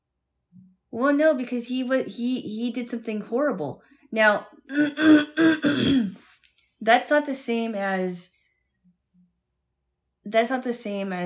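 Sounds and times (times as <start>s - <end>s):
speech: 0.9s - 6.2s, 6.8s - 8.3s, 10.3s - 11.2s
throat clearing: 4.7s - 6.2s.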